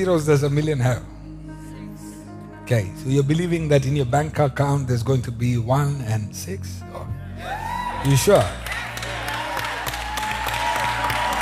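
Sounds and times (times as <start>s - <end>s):
speech: 0.0s - 1.1s, 2.7s - 8.6s
crowd clapping: 8.0s - 11.4s.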